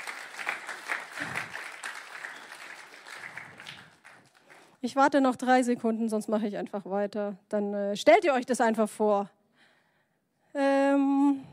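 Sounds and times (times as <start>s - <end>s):
sparse applause from a small audience: 0.0s - 4.8s
speech: 4.8s - 9.4s.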